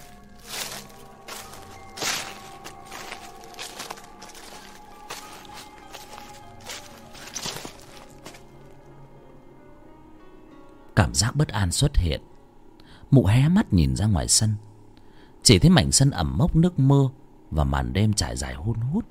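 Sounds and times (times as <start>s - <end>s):
slow uneven footsteps approaching a house across the yard: 0.0s - 8.8s
speech: 11.1s - 12.3s, 13.1s - 14.7s, 15.5s - 19.1s.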